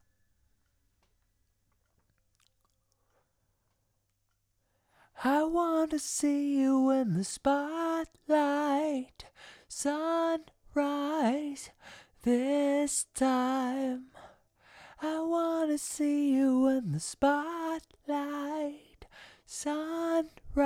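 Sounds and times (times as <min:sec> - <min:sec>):
vocals: 0:04.9 - 0:20.6.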